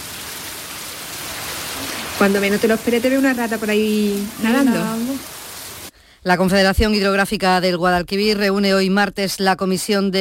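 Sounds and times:
floodwater rushing down a street: 0.0s - 5.9s
speech: 2.2s - 5.4s, 6.2s - 10.2s.

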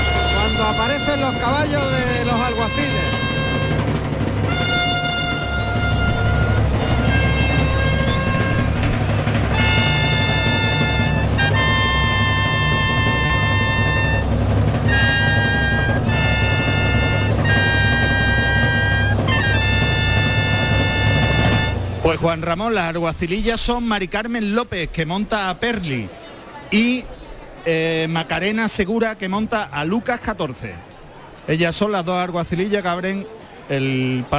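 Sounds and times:
bullring bugles: 0.0s - 22.2s
bullring kettledrums: 0.0s - 22.5s
speech: 0.7s - 3.3s, 22.1s - 34.3s.

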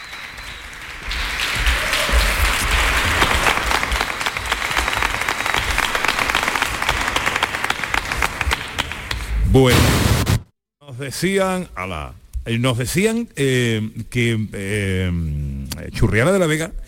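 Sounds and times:
audience applause: 0.0s - 9.3s
speech: 9.6s - 10.0s, 11.0s - 16.8s.

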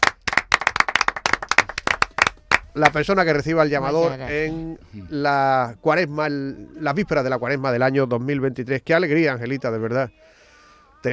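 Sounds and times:
audience clapping for the new llamador: 0.0s - 3.1s
speech: 2.8s - 10.4s.

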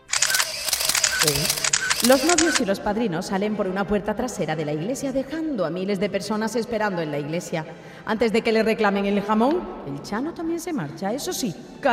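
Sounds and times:
camera shutter click for wedding photo: 0.0s - 2.7s
speech: 1.2s - 11.9s.

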